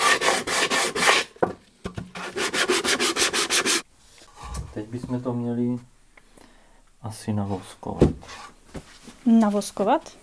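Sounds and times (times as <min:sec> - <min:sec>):
sandpaper sanding a wooden edge: 0:00.0 - 0:01.3, 0:02.2 - 0:03.8
speech: 0:04.9 - 0:05.9, 0:07.0 - 0:08.4, 0:09.2 - 0:10.2.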